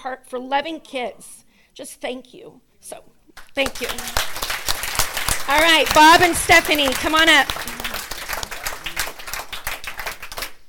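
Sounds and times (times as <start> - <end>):
speech: 0.0 - 4.5, 5.5 - 7.8
audience clapping: 3.4 - 10.6.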